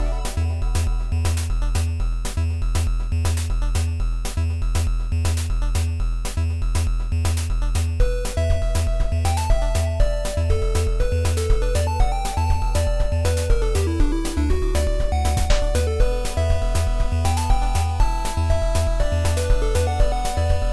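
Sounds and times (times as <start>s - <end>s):
music loop: 0.0s - 20.7s.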